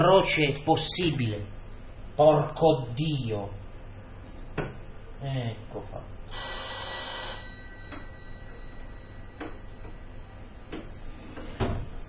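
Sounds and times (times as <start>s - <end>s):
speech: 0.0s - 1.6s, 2.2s - 3.6s, 4.6s - 6.6s
telephone ringing: 6.3s - 10.5s.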